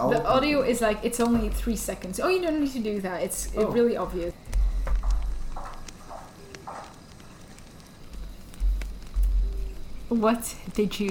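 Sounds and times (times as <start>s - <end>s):
speech: 0.0s - 4.6s, 10.1s - 11.1s
hiss and low rumble: 0.0s - 11.1s
woman walking in high heels in a basement: 4.5s - 9.9s.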